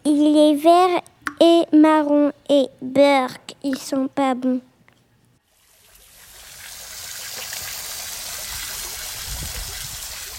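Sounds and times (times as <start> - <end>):
speech: 0.5 - 4.7
water spouting from a water-dragon figure at a fountain jet: 5.5 - 10.3.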